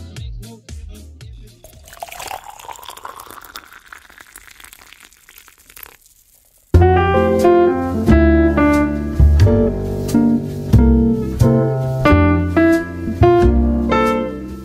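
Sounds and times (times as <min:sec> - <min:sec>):
music: 0:00.0 - 0:01.7, 0:06.8 - 0:14.6
hot coffee pouring into a cup: 0:01.6 - 0:06.8.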